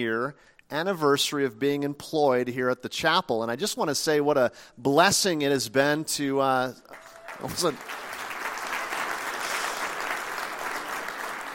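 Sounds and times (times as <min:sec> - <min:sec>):
speech: 0:00.0 - 0:08.1
audience applauding: 0:06.9 - 0:11.5.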